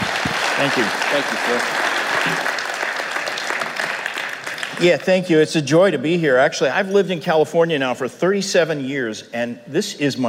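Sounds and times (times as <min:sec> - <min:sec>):
audience applause at a church missions conference: 0:00.0 - 0:05.1
speech: 0:00.6 - 0:02.6, 0:04.8 - 0:10.2.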